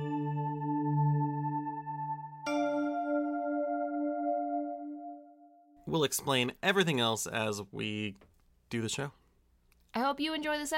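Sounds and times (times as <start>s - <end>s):
chime sound effect: 0.0s - 5.0s
speech: 5.9s - 9.2s, 10.0s - 10.7s.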